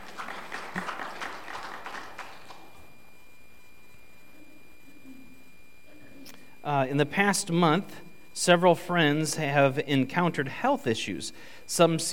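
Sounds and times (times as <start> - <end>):
brief scattered applause from a small group: 0.0 - 2.8
faint low hum: 0.0 - 12.1
speech: 6.7 - 12.1.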